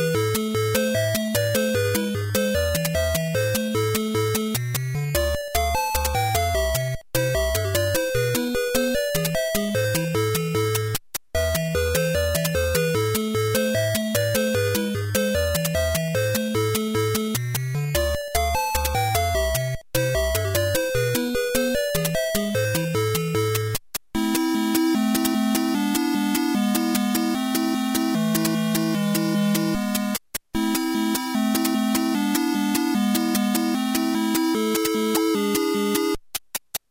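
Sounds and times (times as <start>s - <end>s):
video game sound on a console: 0.0s - 36.8s.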